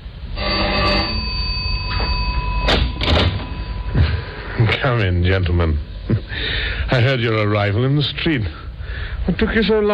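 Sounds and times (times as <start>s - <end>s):
doorbell ringing at apartment door: 0.4s - 4.6s
speech: 4.9s - 8.6s, 9.3s - 9.9s.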